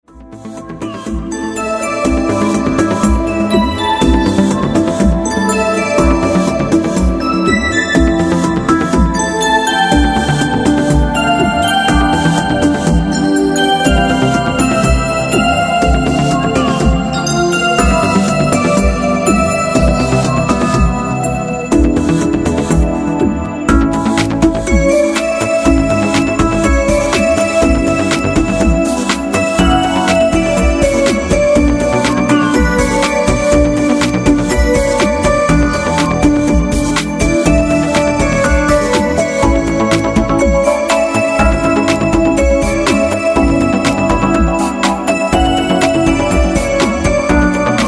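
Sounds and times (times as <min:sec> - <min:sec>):
dance club music: 0:00.8 - 0:47.8.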